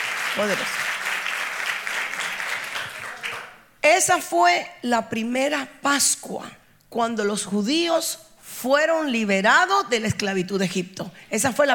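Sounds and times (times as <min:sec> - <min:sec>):
audience applause: 0:00.0 - 0:03.6
speech: 0:00.4 - 0:01.0, 0:03.8 - 0:11.7.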